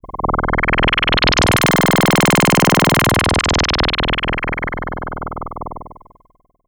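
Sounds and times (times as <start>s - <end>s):
SH-09 synthesizer tone drop: 0.1s - 5.2s.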